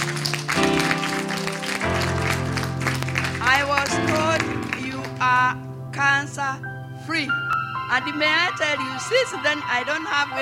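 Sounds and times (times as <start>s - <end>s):
audience clapping: 0.0s - 5.4s
sustained musical chords: 0.0s - 10.3s
speech: 6.4s - 10.3s.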